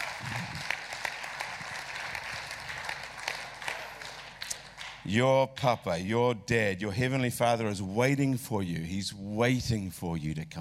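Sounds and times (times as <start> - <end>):
audience clapping: 0.0 - 5.1
speech: 5.1 - 10.5.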